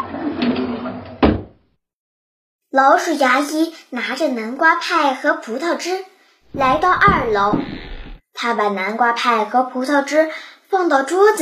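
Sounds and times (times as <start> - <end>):
door closing thud: 1.2 - 1.5, 6.5 - 8.2
speech: 2.8 - 7.8, 8.4 - 11.4.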